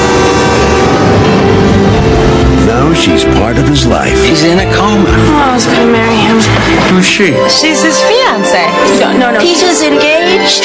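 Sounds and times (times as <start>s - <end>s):
rumble of an approaching train: 0.0s - 8.2s
speech: 3.0s - 10.6s.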